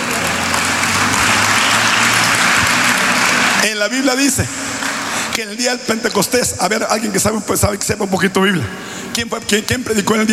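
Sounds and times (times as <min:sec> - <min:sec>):
audience applause: 0:00.0 - 0:05.4
speech: 0:03.8 - 0:04.7, 0:05.4 - 0:10.3.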